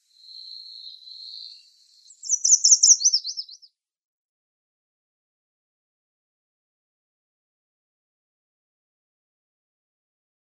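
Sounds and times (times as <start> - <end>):
Yellow Warbler singing: 0.0 - 3.7.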